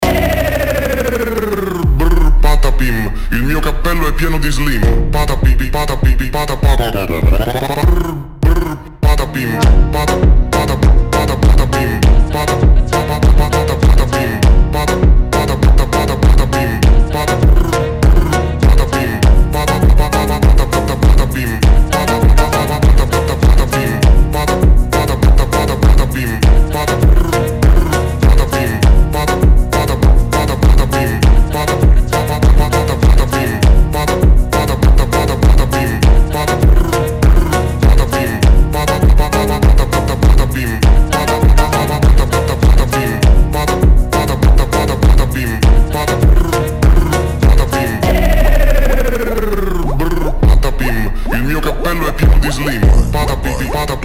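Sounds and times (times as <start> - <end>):
slowed funk music: 0.0 - 51.0, 51.6 - 54.0.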